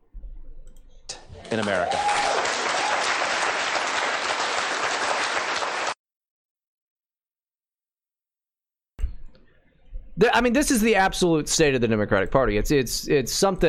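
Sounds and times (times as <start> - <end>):
speech: 1.4 - 2.2, 10.3 - 13.6
audience applause: 1.4 - 6.0.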